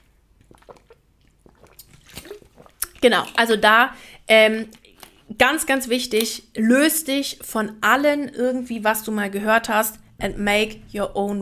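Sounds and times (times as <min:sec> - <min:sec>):
person sipping water: 0:00.0 - 0:03.5
speech: 0:03.0 - 0:04.8, 0:05.4 - 0:11.4.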